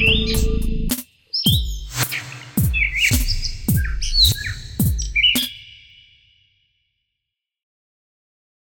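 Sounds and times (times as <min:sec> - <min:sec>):
birdsong: 0:00.0 - 0:06.7.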